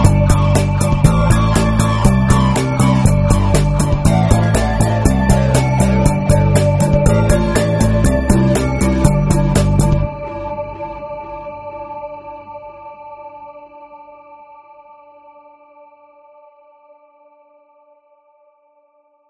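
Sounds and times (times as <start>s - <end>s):
metal music: 0.0s - 11.0s.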